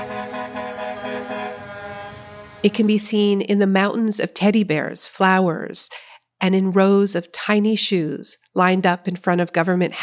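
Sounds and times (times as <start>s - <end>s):
car horns honking from passing convoy: 0.0s - 2.8s
speech: 2.6s - 10.0s.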